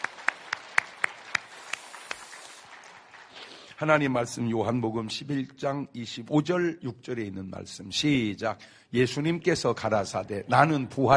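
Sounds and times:
room full of people applauding: 0.0s - 4.4s
speech: 3.8s - 11.1s.

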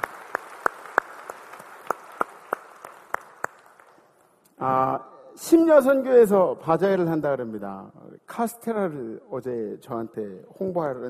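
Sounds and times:
applause: 0.0s - 4.2s
speech: 4.6s - 11.0s.

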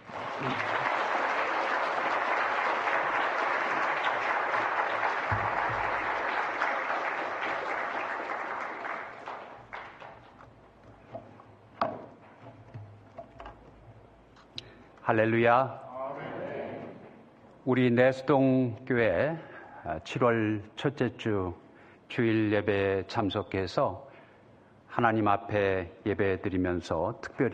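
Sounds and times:
large crowd applauding warmly: 0.0s - 10.6s
speech: 0.4s - 0.7s, 15.1s - 15.8s, 17.6s - 24.1s, 25.0s - 27.5s.

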